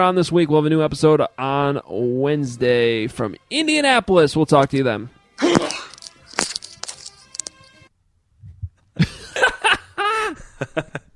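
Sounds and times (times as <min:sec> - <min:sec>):
speech: 0:00.0 - 0:05.7
loud sneeze: 0:05.4 - 0:05.9
laughter: 0:09.0 - 0:11.1.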